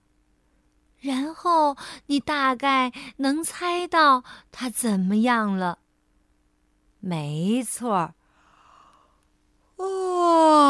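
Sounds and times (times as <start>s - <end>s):
speech: 1.0s - 5.8s, 7.0s - 8.2s, 9.8s - 10.6s
person yawning: 9.8s - 10.6s.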